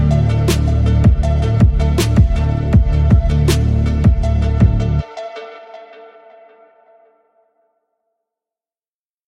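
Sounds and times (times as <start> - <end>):
boosted bass: 0.0 - 5.0.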